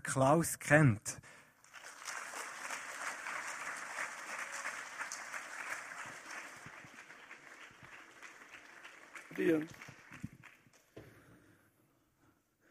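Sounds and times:
speech: 0:00.1 - 0:01.4, 0:09.4 - 0:09.9
audience applause: 0:01.6 - 0:10.9.

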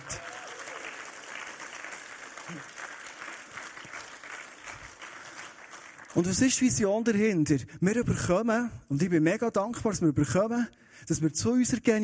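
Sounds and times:
audience applause: 0:00.0 - 0:06.3
speech: 0:02.5 - 0:02.8, 0:06.2 - 0:12.0.

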